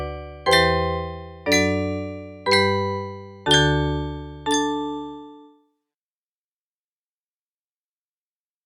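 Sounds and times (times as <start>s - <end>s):
music box: 0.0s - 5.6s.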